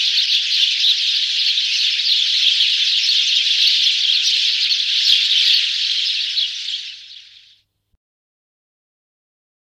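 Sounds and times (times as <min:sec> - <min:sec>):
bird giving bright high chirps: 0:00.0 - 0:07.7.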